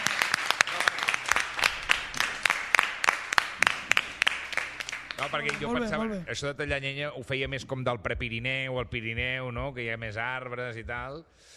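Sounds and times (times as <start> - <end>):
lively applause from a group: 0.0 - 6.2
speech: 5.2 - 11.5.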